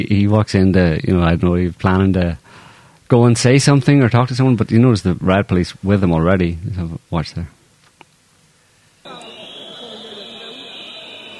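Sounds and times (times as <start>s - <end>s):
speech: 0.0s - 2.4s, 3.1s - 7.6s
crowd whistling at a protest: 9.1s - 11.3s
murmur of voices: 9.1s - 11.3s.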